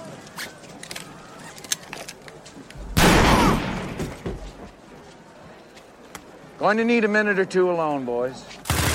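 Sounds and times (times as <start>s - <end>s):
gunshot in a scene from the 1989 Batman film: 2.9s - 4.2s
speech: 6.6s - 8.6s.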